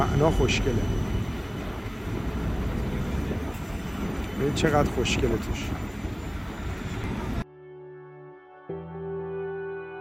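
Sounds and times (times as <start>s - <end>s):
speech: 0.0s - 1.1s, 4.4s - 5.9s
tram running: 0.0s - 7.4s.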